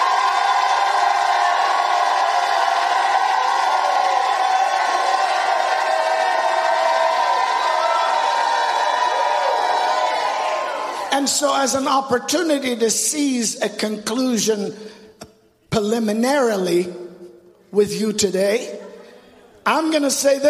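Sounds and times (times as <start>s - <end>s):
crowd shouting and cheering: 0.0s - 12.0s
speech: 11.2s - 15.0s, 15.8s - 17.0s, 17.7s - 18.8s, 19.6s - 20.4s.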